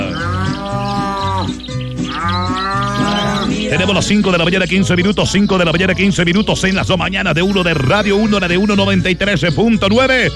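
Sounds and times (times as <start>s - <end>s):
cow mooing during milking: 0.0s - 4.2s, 7.3s - 9.0s
speech: 3.7s - 10.3s.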